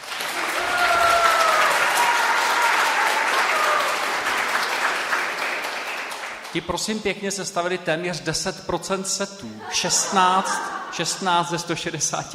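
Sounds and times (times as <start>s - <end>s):
audience applause: 0.0s - 6.6s
speech: 6.6s - 12.3s
laughter: 9.5s - 11.9s.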